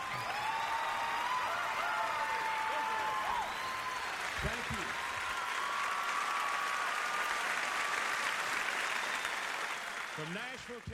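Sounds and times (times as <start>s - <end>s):
audience applause welcoming Southern Gospel groups: 0.0s - 10.9s
speech: 10.2s - 10.9s.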